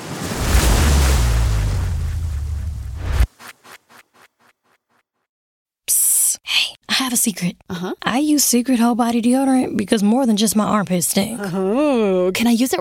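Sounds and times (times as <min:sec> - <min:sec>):
ocean surf roaring at a surf break: 0:00.0 - 0:03.2
speech: 0:07.1 - 0:12.7.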